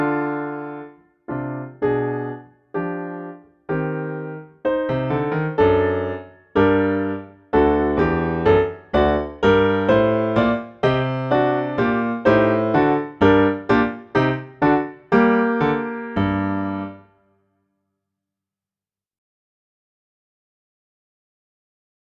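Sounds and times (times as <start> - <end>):
baroque dance piece: 1.3 - 17.0.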